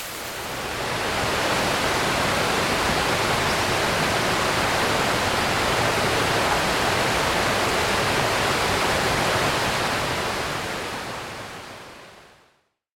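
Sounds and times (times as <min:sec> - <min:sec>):
subtropical rainforest creeks flowing: 0:00.0 - 0:04.5
subtropical rainforest waterfalls: 0:00.0 - 0:12.6.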